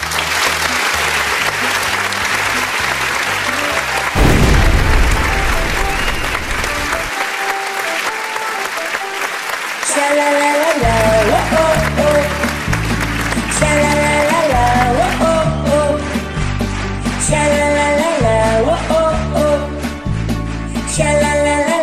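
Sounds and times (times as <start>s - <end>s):
music playing: 0.0s - 9.7s, 10.7s - 21.8s
audience applause for a singer: 0.0s - 15.5s.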